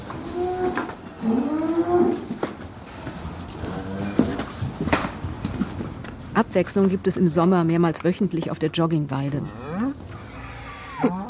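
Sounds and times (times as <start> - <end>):
dairy cows mooing in a barn: 0.0 - 2.5, 3.5 - 4.5, 9.4 - 11.2
speech: 6.4 - 9.7, 11.0 - 11.2.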